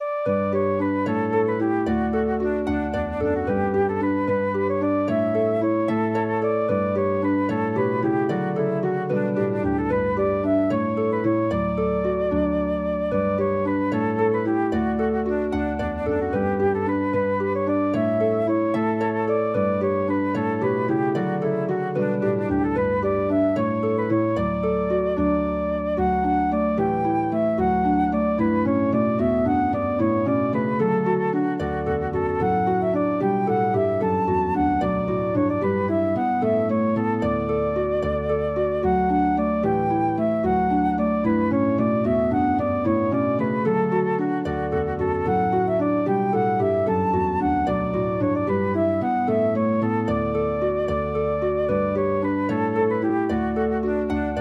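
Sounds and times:
flute: 0:00.0 - 0:54.4
harp: 0:00.0 - 0:54.4.

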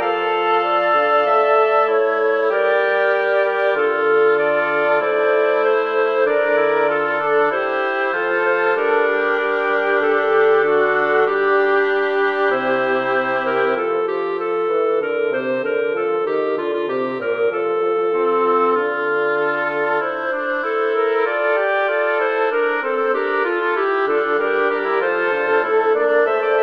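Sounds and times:
woodwind quartet playing a birdsong piece: 0:00.0 - 0:26.6.

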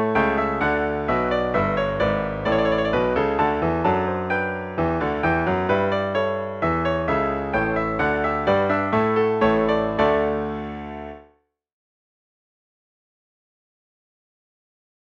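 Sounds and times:
piano transcription: 0:00.0 - 0:11.4.

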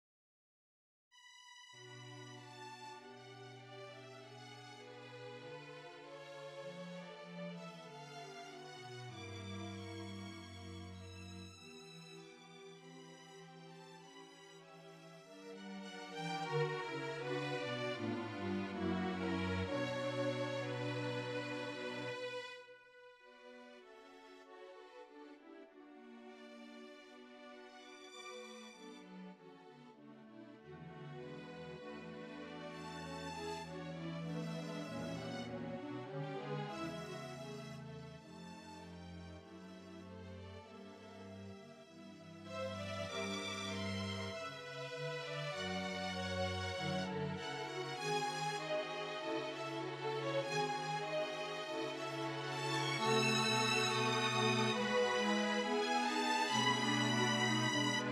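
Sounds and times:
slow classical piece: 0:01.2 - 0:58.1.

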